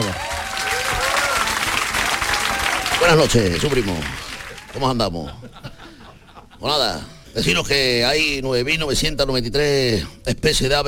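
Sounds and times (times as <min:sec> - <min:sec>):
audience applause: 0:00.0 - 0:05.0
speech: 0:03.0 - 0:05.7, 0:06.6 - 0:10.8
laughter: 0:05.0 - 0:07.2.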